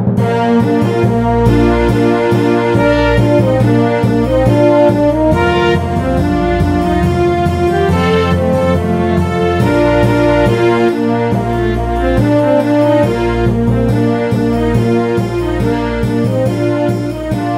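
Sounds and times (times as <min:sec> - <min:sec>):
trumpet melody: 0:00.2 - 0:17.5.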